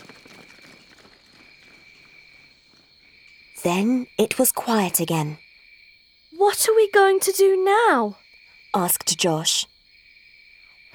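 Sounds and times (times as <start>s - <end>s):
footsteps of soldiers running past: 0.0s - 2.8s
speech: 3.6s - 5.4s, 6.4s - 9.7s.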